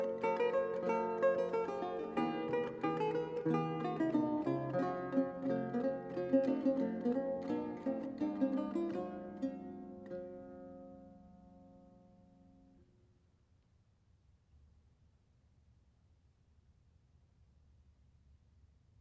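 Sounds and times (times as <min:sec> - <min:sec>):
solo lute playing a jig: 0:00.0 - 0:12.8.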